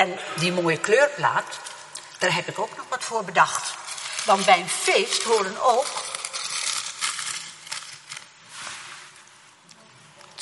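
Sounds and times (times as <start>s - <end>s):
speech: 0.0s - 6.1s
plastic bag of balloons rustling: 3.0s - 9.6s.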